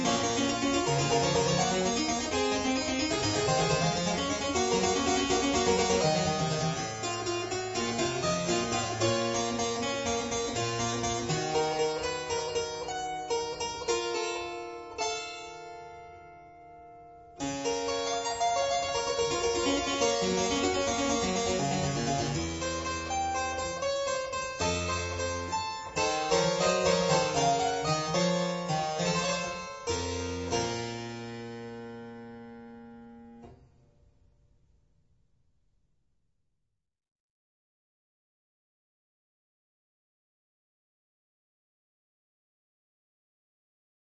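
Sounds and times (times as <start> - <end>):
baroque keyboard sinfonia in B minor: 0.0 - 33.5.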